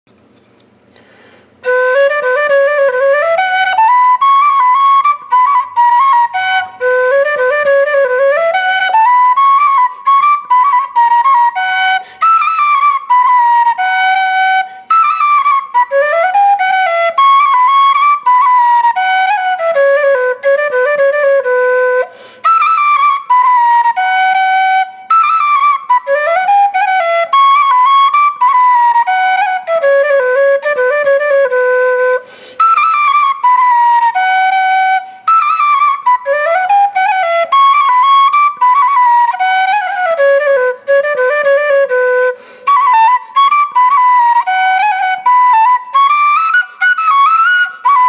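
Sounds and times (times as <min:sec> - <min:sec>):
polska played on a Härjedalen pipe: 0:01.6 - 0:48.0.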